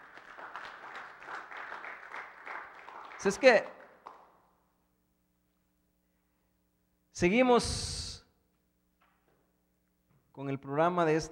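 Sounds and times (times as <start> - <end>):
audience applause: 0.0 - 4.3
speech: 3.2 - 3.8, 7.2 - 8.0, 10.4 - 11.3.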